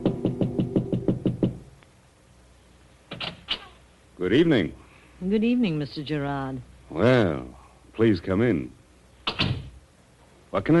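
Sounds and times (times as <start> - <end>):
soft knock on an apartment door: 0.0 - 1.6
speech: 4.2 - 8.8, 10.5 - 10.7.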